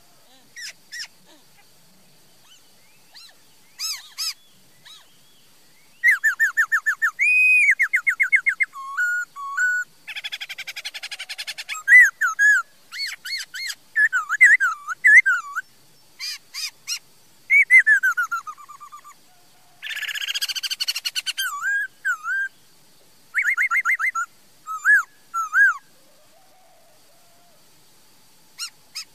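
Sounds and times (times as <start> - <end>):
Laughingthrush song: 2.4 - 19.2, 19.8 - 22.6, 23.3 - 25.9.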